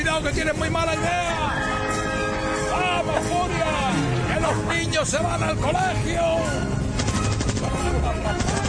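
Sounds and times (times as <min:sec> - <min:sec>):
speech: 0:00.2 - 0:01.7, 0:02.7 - 0:06.8
rapid repeating gunfire in a Wild West shootout: 0:06.9 - 0:08.6.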